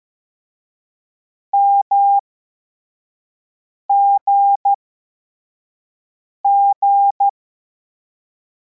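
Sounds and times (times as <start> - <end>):
CW morse code beeps: 1.6 - 2.2, 3.9 - 4.7, 6.5 - 7.3.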